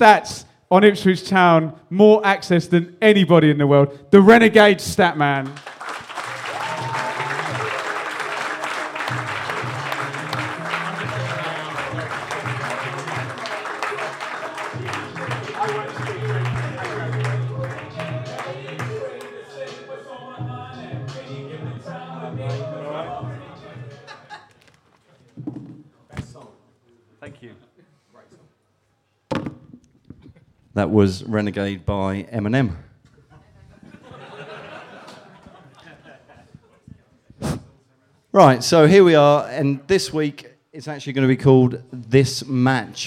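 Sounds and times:
speech: 0.0 - 5.8, 30.8 - 32.9, 38.4 - 43.0
audience applause and cheering: 5.5 - 19.8
laughter: 6.1 - 19.2, 22.0 - 25.2, 33.3 - 37.3.

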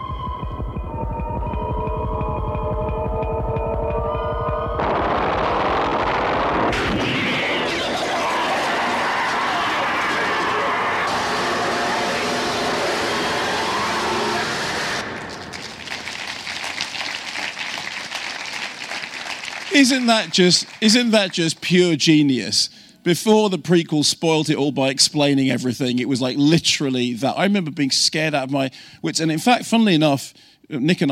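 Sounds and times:
heavy throbbing pulses from a science-fiction film trailer: 0.0 - 16.3
ominous droning hum from a science-fiction film trailer: 1.4 - 16.4
speech: 19.8 - 31.0.

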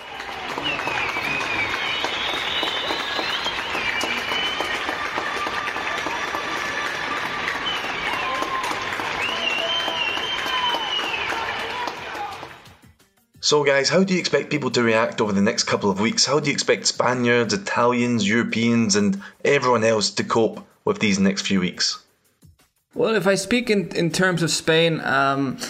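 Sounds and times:
scattered whistles and shouts: 0.0 - 12.5
people applauding healthcare workers at night: 0.0 - 12.8
speech: 13.5 - 22.0, 23.0 - 25.6.

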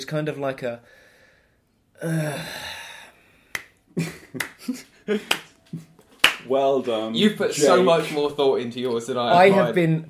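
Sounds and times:
speech: 0.0 - 1.0, 2.0 - 2.8, 4.0 - 5.9, 6.5 - 10.0
person sighing: 2.0 - 3.5
slow clapping: 3.5 - 6.5.

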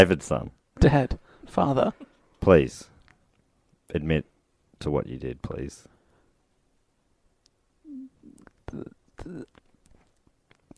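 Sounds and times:
speech: 0.0 - 2.9, 3.9 - 5.9, 8.7 - 9.6
man swallowing: 7.9 - 9.8.

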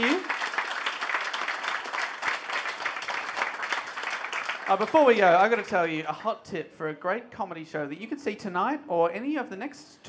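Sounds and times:
live audience applause: 0.0 - 5.8
speech: 4.7 - 10.0.

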